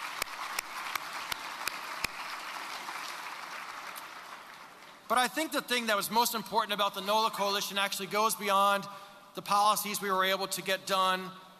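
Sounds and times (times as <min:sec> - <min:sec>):
audience applause: 0:00.0 - 0:05.1
speech: 0:05.1 - 0:11.5.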